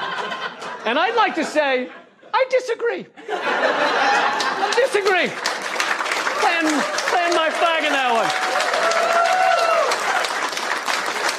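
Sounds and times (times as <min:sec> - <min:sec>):
laughter: 0:00.0 - 0:02.5, 0:03.2 - 0:05.5
speech: 0:00.8 - 0:05.5, 0:06.4 - 0:09.0
audience applause: 0:03.9 - 0:11.3.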